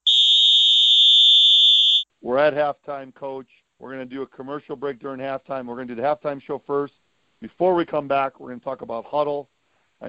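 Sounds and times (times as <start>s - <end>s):
halftime whistle blast: 0.0s - 2.0s
speech: 2.3s - 10.0s.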